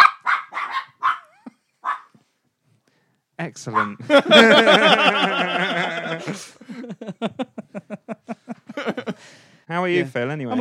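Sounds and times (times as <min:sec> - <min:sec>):
dog barking: 0:00.0 - 0:02.2, 0:03.7 - 0:04.0
speech: 0:03.4 - 0:07.5, 0:09.2 - 0:10.6
laughter: 0:03.9 - 0:09.3.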